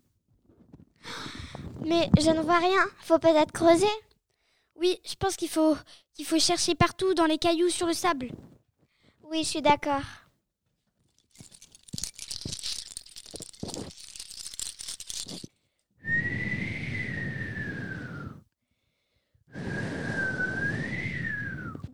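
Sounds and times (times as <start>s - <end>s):
speech: 1.8s - 4.1s, 4.8s - 8.5s, 9.3s - 10.2s
strong wind blowing on the beach: 16.1s - 18.4s, 19.6s - 21.9s.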